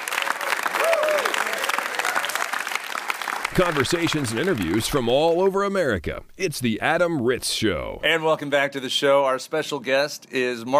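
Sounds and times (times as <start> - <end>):
round of applause at Tulane University: 0.0 - 5.6
speech: 3.6 - 10.7.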